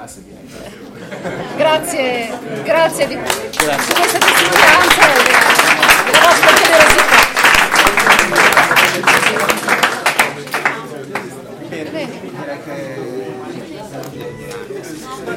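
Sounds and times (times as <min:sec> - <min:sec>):
speech: 0:00.0 - 0:07.3
murmuring voices and chatter: 0:00.4 - 0:15.3
laughter: 0:00.5 - 0:10.4
audience applause: 0:03.2 - 0:11.4.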